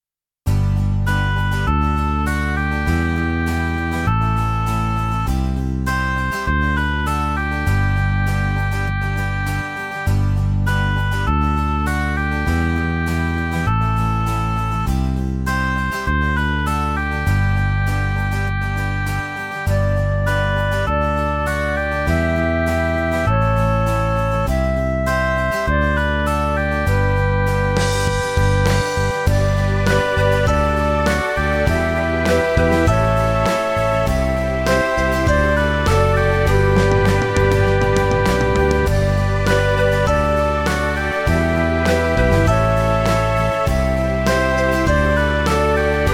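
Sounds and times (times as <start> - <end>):
backing track in G: 0.5 - 46.1.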